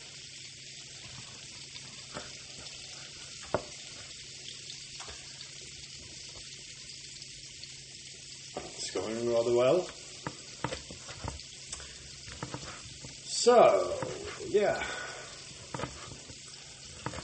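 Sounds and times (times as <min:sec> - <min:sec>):
liquid bubbling and sizzling in a frying pan: 0:00.0 - 0:17.2
speech: 0:09.3 - 0:10.0, 0:13.5 - 0:15.0.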